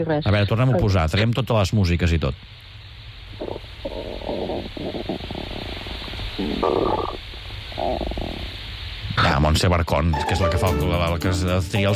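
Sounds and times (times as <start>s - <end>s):
speech: 0.0s - 2.6s, 6.4s - 7.2s, 9.4s - 11.9s
stomach rumbling and gurgling: 3.3s - 9.2s.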